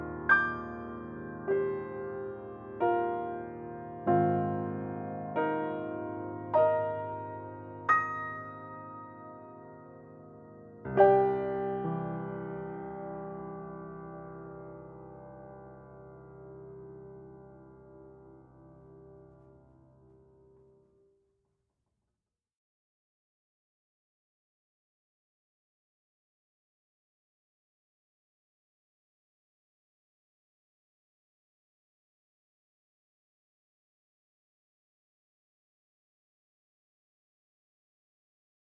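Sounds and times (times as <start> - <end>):
improvised solo piano: 0.0 - 20.0.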